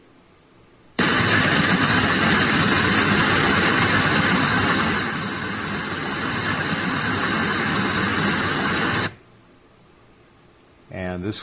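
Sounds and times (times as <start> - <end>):
tinnitus-like static hiss: 1.0 - 9.2.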